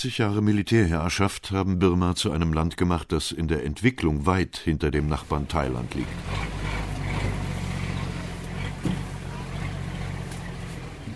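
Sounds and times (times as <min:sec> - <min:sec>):
speech: 0:00.0 - 0:06.6
rattling old bus engine drone on a ride in Burma: 0:05.0 - 0:11.1
rattling old bus bump: 0:08.5 - 0:09.7.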